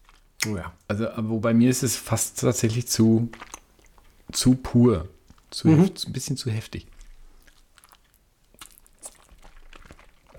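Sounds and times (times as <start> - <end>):
crunchy chewing of a small piece of food about a cubic centimetre: 0.0 - 0.4, 2.6 - 4.5, 6.7 - 10.3
speech: 0.4 - 3.5, 4.3 - 7.0.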